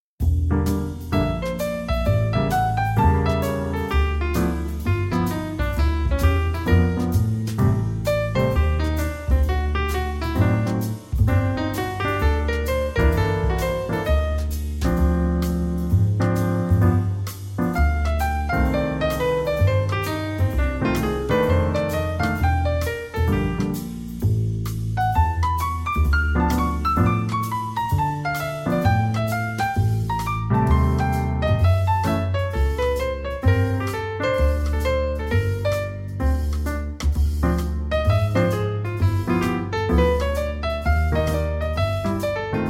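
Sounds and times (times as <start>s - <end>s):
relaxing jazz lounge music: 0.2s - 42.6s.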